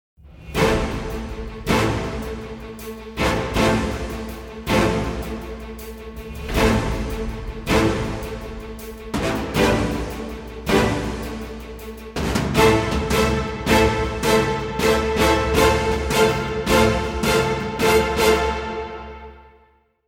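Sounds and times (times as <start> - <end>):
trailer music: 0.2 - 19.9.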